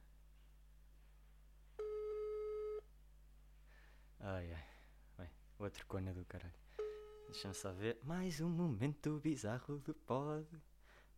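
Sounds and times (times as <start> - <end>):
faint low hum: 0.0 - 11.1
telephone line tone from an outgoing call on a mobile phone: 1.8 - 2.9, 6.8 - 7.8
speech: 4.2 - 11.1.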